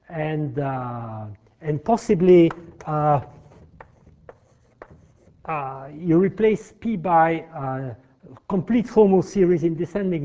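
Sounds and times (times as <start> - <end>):
speech: 0.1 - 3.4, 5.5 - 10.2
taps on a board writing integrals: 2.4 - 5.5.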